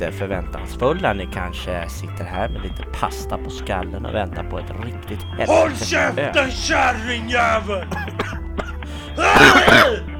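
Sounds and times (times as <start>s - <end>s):
speech: 0.0s - 8.4s
person coughing and clearing throat: 7.9s - 10.1s.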